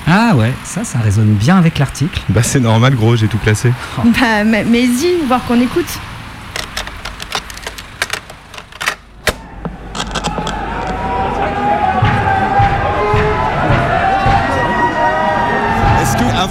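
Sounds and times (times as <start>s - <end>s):
speech: 0.1s - 6.1s
clicks and clatter: 6.5s - 11.0s
protest crowd shouting and calling: 9.4s - 16.5s.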